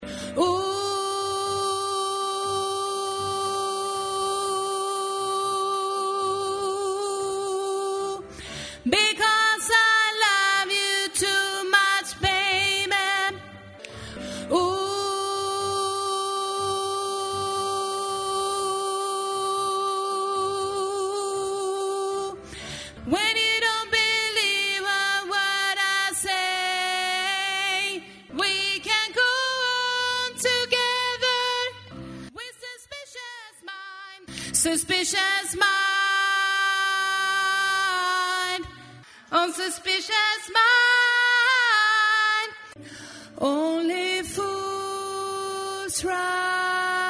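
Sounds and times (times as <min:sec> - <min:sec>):
soprano voice: 0:00.0 - 0:42.8, 0:43.4 - 0:47.0.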